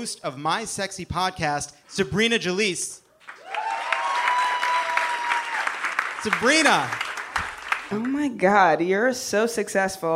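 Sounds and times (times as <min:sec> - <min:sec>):
speech: 0:00.0 - 0:03.0, 0:06.2 - 0:07.1, 0:07.9 - 0:10.1
audience applause greeting a comedian onstage: 0:03.2 - 0:08.3.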